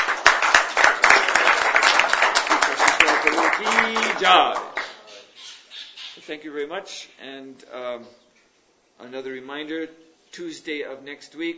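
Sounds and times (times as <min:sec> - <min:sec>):
audience applause: 0:00.0 - 0:05.0
speech: 0:04.2 - 0:04.8, 0:06.3 - 0:08.2, 0:09.0 - 0:11.5.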